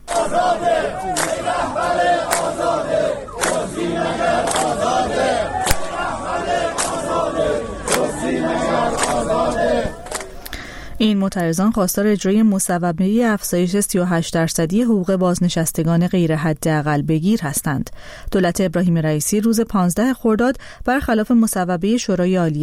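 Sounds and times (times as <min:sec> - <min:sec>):
group of protesting social security retirees chanting slogans: 0:00.0 - 0:10.5
speech: 0:11.0 - 0:22.6.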